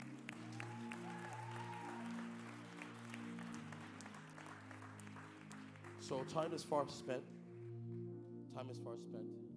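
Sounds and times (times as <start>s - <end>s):
audience applause: 0.0s - 7.0s
speech: 6.0s - 7.4s, 8.6s - 9.4s.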